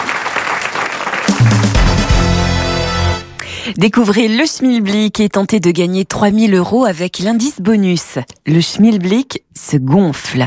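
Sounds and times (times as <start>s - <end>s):
studio audience applause: 0.0s - 2.5s
speech: 3.7s - 10.4s.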